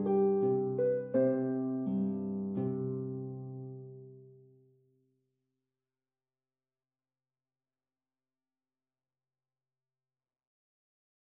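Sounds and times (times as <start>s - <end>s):
lute playing an eastern song: 0.0s - 4.3s.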